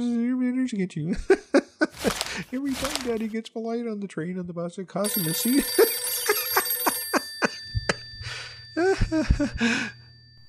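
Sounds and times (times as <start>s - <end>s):
speech: 0.7s - 6.1s, 9.1s - 10.0s
bell-type telephone ringing: 2.0s - 3.3s, 5.0s - 10.4s.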